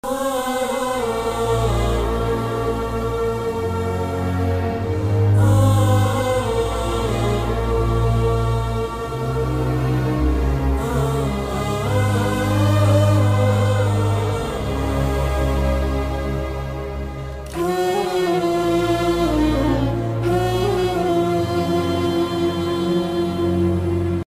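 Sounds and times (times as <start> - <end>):
sad background music: 0.1 - 24.2.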